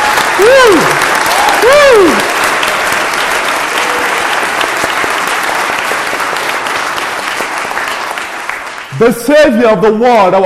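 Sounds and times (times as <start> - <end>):
audience clapping: 0.0 - 9.6
speech: 0.4 - 1.0, 9.0 - 10.4.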